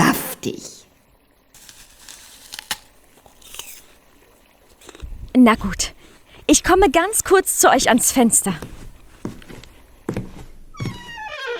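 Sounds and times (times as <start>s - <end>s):
speech: 0.4s - 0.8s, 5.4s - 5.9s, 6.5s - 8.9s
crisp bites into the green half of a fruit: 1.6s - 7.2s
crackling chewing: 1.6s - 10.1s.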